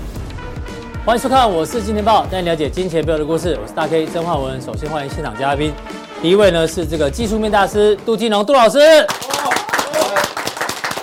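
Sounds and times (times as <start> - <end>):
speech: 1.0 - 9.3
studio audience applause: 9.1 - 11.0.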